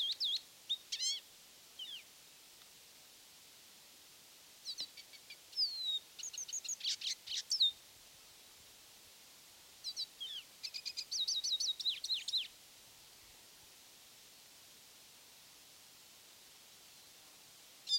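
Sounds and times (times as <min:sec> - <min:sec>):
lesser goldfinch singing: 0:00.0 - 0:02.1, 0:04.6 - 0:07.8, 0:09.8 - 0:12.6.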